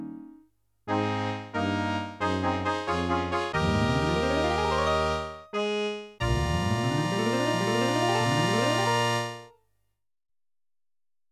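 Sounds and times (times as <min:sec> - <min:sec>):
game music jingles: 0:00.9 - 0:09.5.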